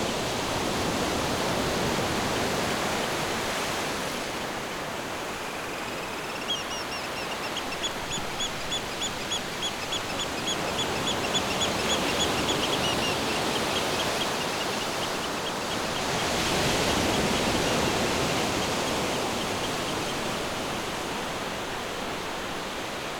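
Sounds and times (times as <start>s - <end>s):
waves washing at the beach: 0.0s - 22.4s
bird giving high thin chirps: 5.3s - 20.3s.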